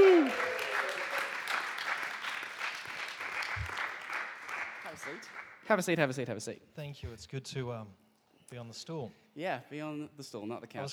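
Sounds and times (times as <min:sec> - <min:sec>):
audience applause: 0:00.0 - 0:05.5
speech: 0:05.7 - 0:10.9.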